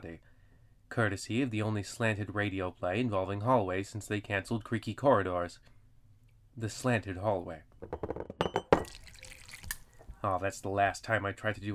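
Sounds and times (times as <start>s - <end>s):
speech: 0.0s - 0.3s, 0.9s - 5.7s, 6.6s - 8.4s, 10.2s - 11.7s
spilled coffee dripping: 8.6s - 10.1s.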